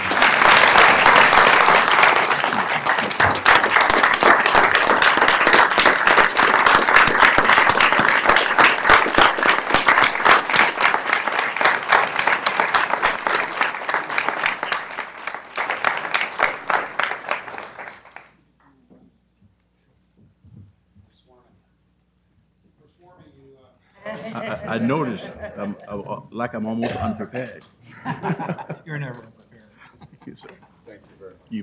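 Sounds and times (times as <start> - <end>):
audience applause: 0.0 - 18.4
laughter: 24.0 - 26.2, 26.8 - 29.0
speech: 24.9 - 29.4, 30.3 - 30.7.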